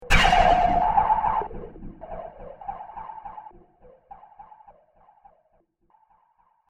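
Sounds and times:
alien blast impact and decay: 0.0s - 3.1s.

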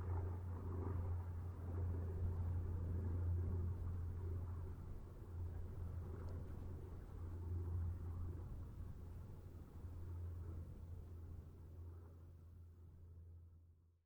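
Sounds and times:
distant Trojan aircraft squadron passing: 0.0s - 10.6s.

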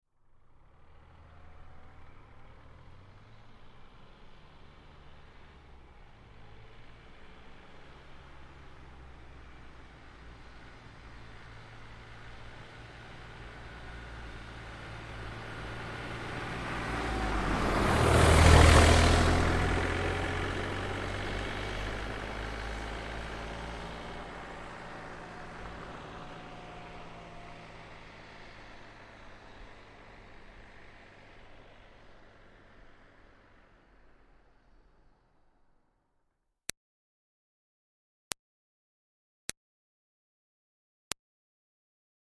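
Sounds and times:
Smart car passing by slowly: 0.2s - 35.5s.

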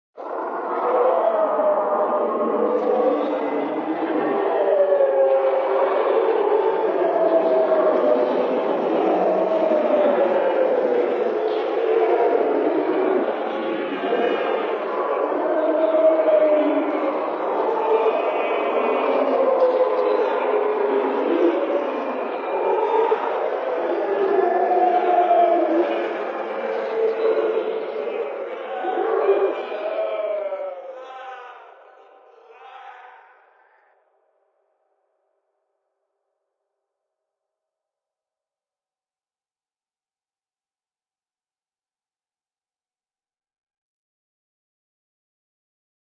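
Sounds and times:
multiple horrible screams of souls trapped in hell: 0.2s - 34.1s.

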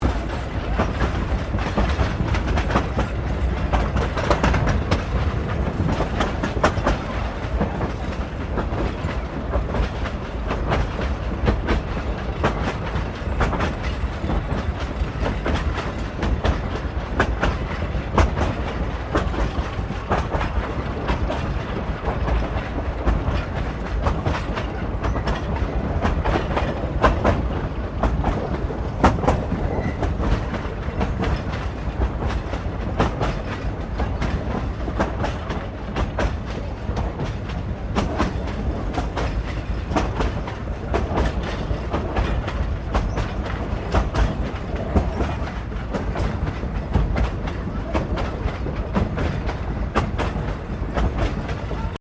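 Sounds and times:
1937 train carriages rolling fast exterior: 0.0s - 51.9s.

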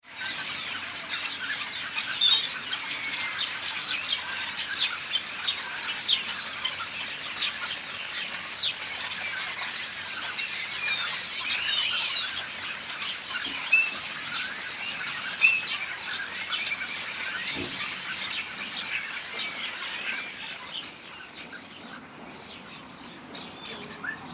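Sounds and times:
flock of birds startled: 0.1s - 24.3s.

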